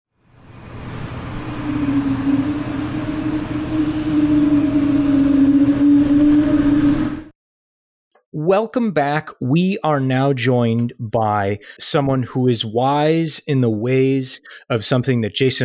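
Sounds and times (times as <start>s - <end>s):
Pratt & Whitney geared turbofan jet engine whale-like whine: 0.2s - 7.4s
speech: 8.5s - 15.6s.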